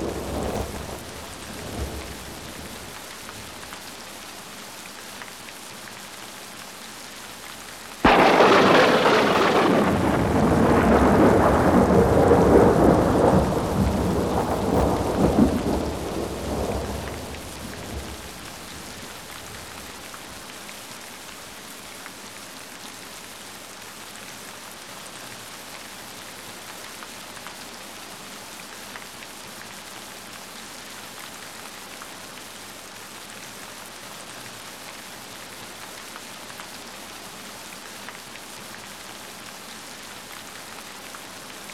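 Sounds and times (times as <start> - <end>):
thunder: 0.0 - 3.6, 8.0 - 20.2
rain in a thunderstorm: 0.0 - 41.7.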